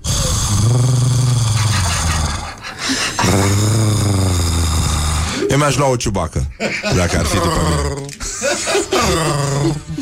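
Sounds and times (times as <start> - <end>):
person imitating a cat purring: 0.0 - 2.6, 3.2 - 5.3
speech: 5.5 - 9.9
laughter: 6.4 - 9.9.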